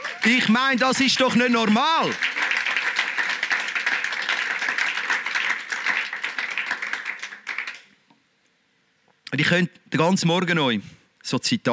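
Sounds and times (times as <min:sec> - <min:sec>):
audience applause: 0:00.0 - 0:07.9
speech: 0:00.2 - 0:02.3, 0:09.4 - 0:11.7.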